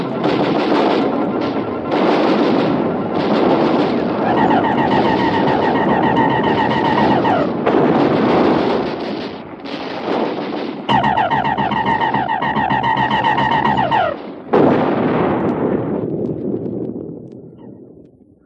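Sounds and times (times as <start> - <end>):
artillery batteries firing in a radio drama battle scene: 0.0 - 17.2
high whining tone: 4.2 - 7.6, 10.9 - 14.2.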